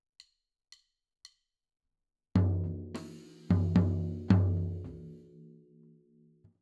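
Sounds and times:
floor tom drum: 2.4 - 5.2.

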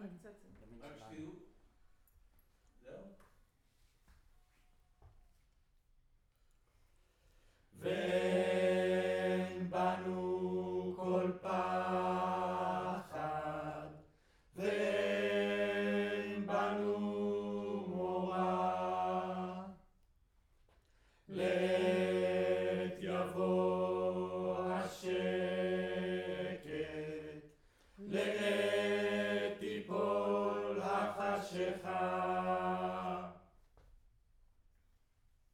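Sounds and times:
choir singing in room: 7.8 - 19.9, 21.3 - 33.5.

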